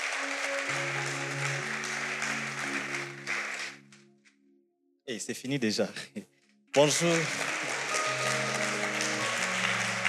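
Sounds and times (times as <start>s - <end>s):
congregation cheering and applauding during a church service: 0.0s - 3.9s, 6.8s - 10.0s
speech: 5.1s - 7.5s.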